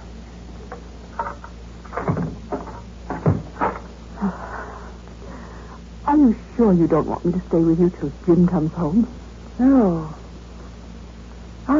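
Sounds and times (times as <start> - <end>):
door being unlocked and opened: 1.2 - 3.9
speech: 6.3 - 10.2.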